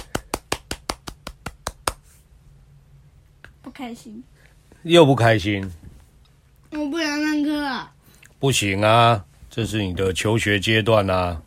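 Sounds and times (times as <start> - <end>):
hands clapping: 0.0 - 2.1
speech: 3.8 - 5.8, 7.6 - 11.4.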